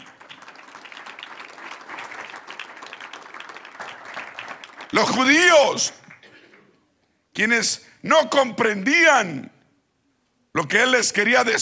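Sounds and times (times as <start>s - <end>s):
audience applause: 0.0s - 6.2s
speech: 4.9s - 6.0s, 7.4s - 9.5s, 10.6s - 11.5s.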